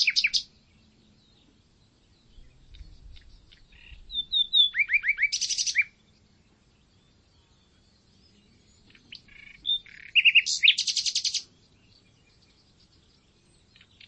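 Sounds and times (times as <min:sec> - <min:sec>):
common nightingale Luscinia megarhynchos singing: 0:00.0 - 0:14.0.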